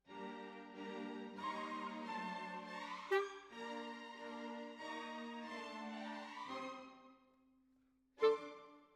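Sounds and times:
clarinet: 1.2 - 7.0, 8.2 - 8.8.

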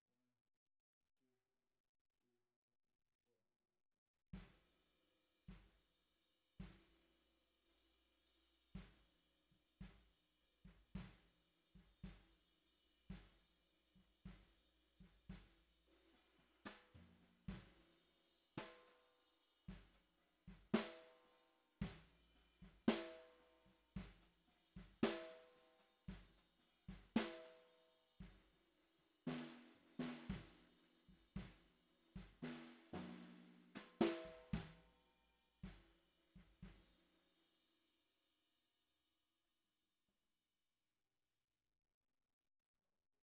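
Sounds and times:
bottom snare drum: 6.6 - 7.0, 10.7 - 12.4, 13.1 - 13.5, 14.2 - 18.0, 18.6 - 19.1, 19.7 - 28.6, 29.3 - 35.0, 35.6 - 36.9.

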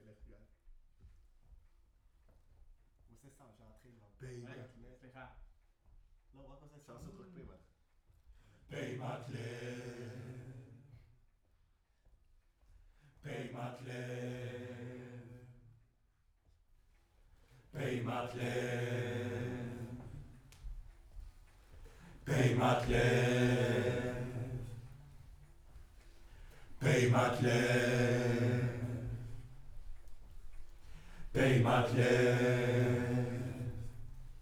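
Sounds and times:
distant choir: 8.7 - 11.0, 13.2 - 15.8, 17.5 - 34.4.

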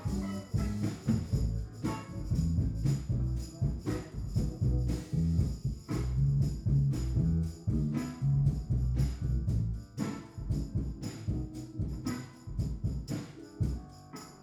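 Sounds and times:
piano: 0.0 - 14.4.

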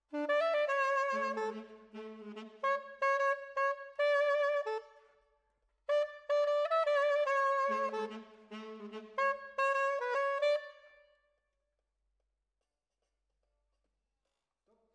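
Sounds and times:
saxophone: 0.0 - 5.2, 5.9 - 11.1.

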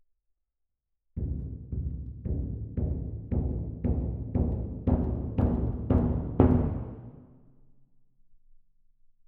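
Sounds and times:
percussion: 1.2 - 7.3.

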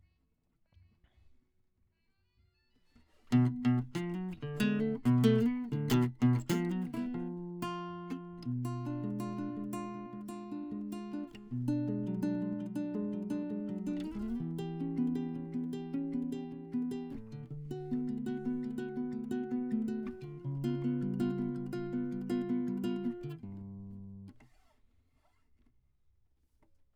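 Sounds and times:
classical guitar: 3.3 - 24.5.

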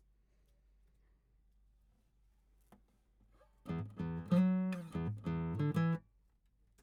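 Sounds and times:
guitar: 3.7 - 6.1.

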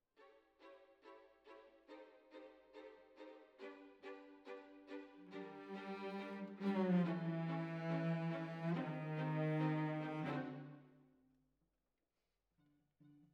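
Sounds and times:
cellos playing: 3.2 - 10.8.

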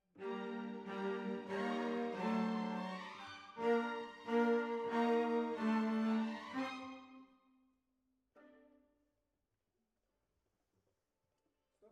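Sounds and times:
cellos playing: 0.2 - 7.2.

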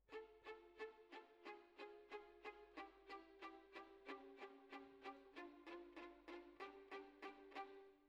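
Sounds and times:
violins: 0.0 - 8.0.

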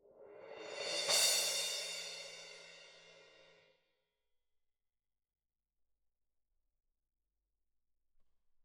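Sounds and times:
percussion: 0.0 - 3.6.

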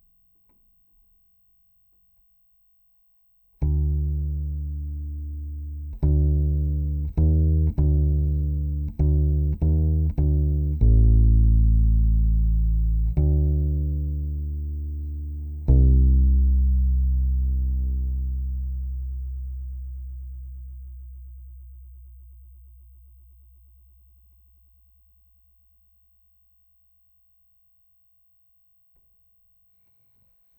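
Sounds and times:
bass guitar C note through DI: 3.6 - 24.8.

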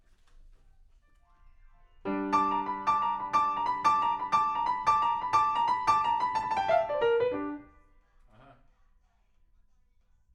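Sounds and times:
rock and roll piano: 2.1 - 7.7.

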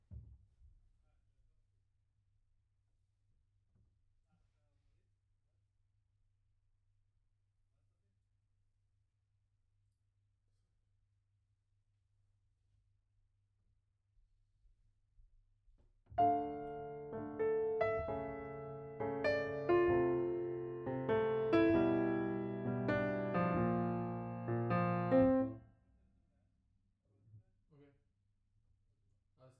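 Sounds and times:
piano note B: 16.2 - 25.6.

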